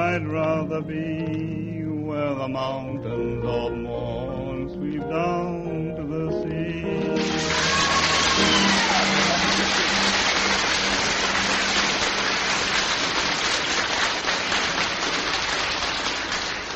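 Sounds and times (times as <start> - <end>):
speech: 0.1 - 7.8
audience applause: 7.1 - 16.7.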